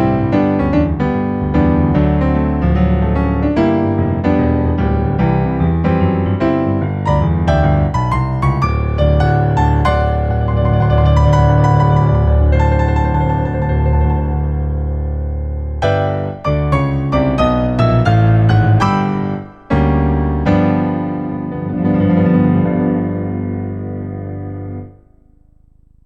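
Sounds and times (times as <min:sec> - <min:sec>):
intermediate solo piano piece: 0:00.0 - 0:26.0.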